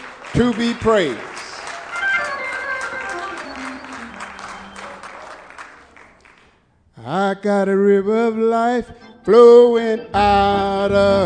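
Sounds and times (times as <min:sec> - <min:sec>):
audience hand clapping: 0:00.0 - 0:06.7
speech: 0:00.3 - 0:01.3, 0:07.1 - 0:11.2.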